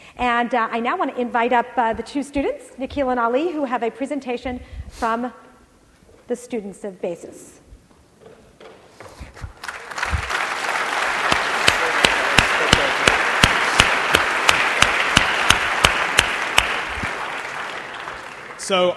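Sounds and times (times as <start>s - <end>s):
speech: 0.2s - 5.4s, 6.3s - 7.6s, 18.7s - 18.9s
round of applause: 9.6s - 18.9s.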